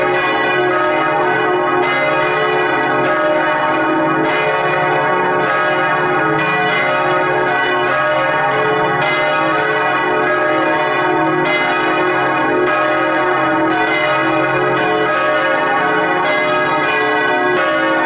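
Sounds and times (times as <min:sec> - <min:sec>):
church bells ringing in full peal: 0:00.0 - 0:18.0.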